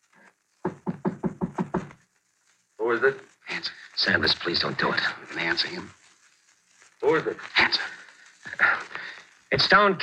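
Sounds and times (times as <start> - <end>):
knocking on the door of a flat: 0.7 - 1.9
speech: 2.9 - 6.0, 7.0 - 8.0, 9.5 - 10.0.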